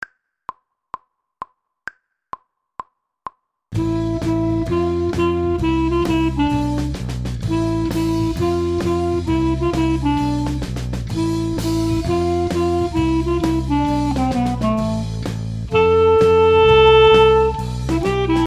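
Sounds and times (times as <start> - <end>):
clarinet: 3.8 - 18.4.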